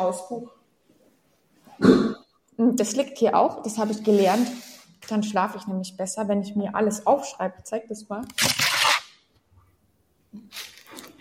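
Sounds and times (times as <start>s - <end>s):
speech: 0.0s - 0.6s, 1.8s - 8.6s
paper page torn out of a notebook: 8.3s - 9.2s.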